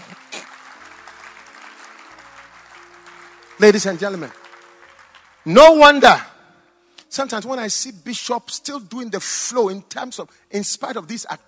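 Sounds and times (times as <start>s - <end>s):
audience clapping: 0.0s - 6.2s
speech: 3.6s - 4.4s, 5.4s - 6.3s, 7.1s - 11.4s.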